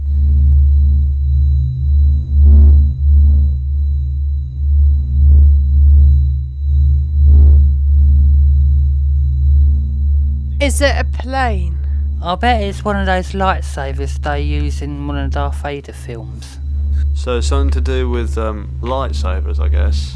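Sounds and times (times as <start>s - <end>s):
sun's electromagnetic vibrations recorded as sound by NASA: 0.0s - 20.1s
speech: 10.7s - 16.6s, 17.2s - 20.1s.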